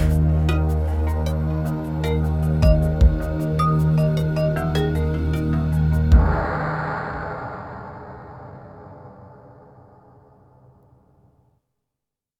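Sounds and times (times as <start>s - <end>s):
general music: 0.0s - 6.4s.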